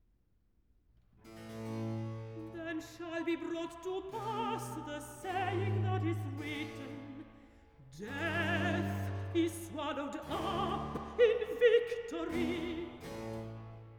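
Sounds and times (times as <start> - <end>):
sung recitative: 2.4 - 13.4.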